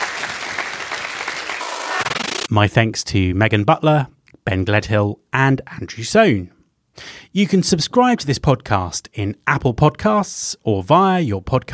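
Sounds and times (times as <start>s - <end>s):
audience applause for a panel: 0.0s - 2.5s
speech: 2.5s - 11.7s.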